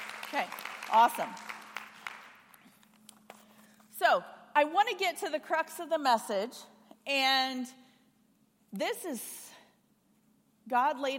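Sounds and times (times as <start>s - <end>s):
audience applause for volunteers: 0.0s - 2.4s
low steady hum: 0.0s - 11.1s
speech: 0.3s - 1.5s, 4.0s - 7.8s, 8.7s - 9.4s, 10.7s - 11.1s.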